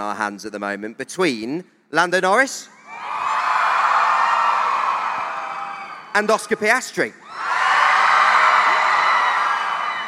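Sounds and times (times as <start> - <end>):
speech: 0.0 - 2.8, 6.2 - 7.2
crowd cheering: 2.8 - 6.5, 7.2 - 10.0.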